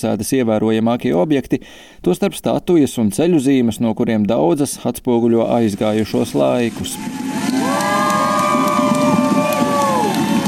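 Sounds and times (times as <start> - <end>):
speech: 0.0 - 7.6
crowd in east London applauding and cheering as the Robert Milligan statue is taken down: 6.5 - 10.4
people whooping: 6.7 - 10.4.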